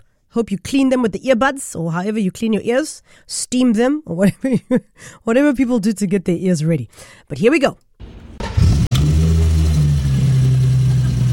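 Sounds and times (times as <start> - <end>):
speech: 0.3 - 8.2
car starter cranking: 8.3 - 11.3.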